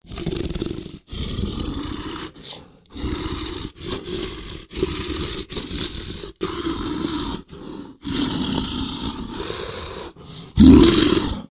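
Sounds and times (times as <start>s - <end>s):
monster breathing: 0.0s - 11.5s.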